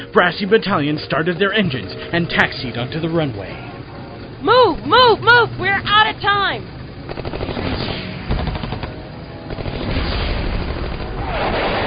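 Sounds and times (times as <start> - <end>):
speech: 0.1 - 3.7, 4.4 - 7.4
machine gun fire: 7.0 - 11.8.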